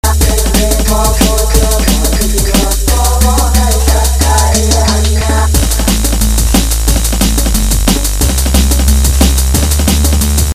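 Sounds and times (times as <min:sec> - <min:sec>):
African tribal music: 0:00.0 - 0:10.5.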